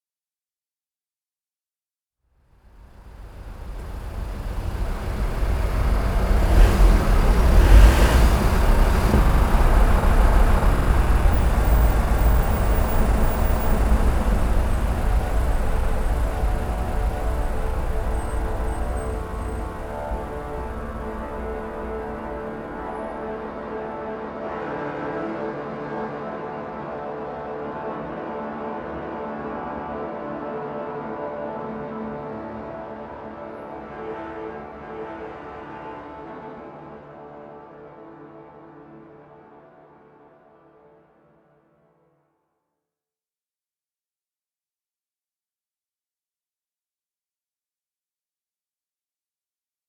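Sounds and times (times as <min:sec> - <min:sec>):
bus: 0:02.5 - 0:23.8
traffic noise: 0:02.6 - 0:23.6.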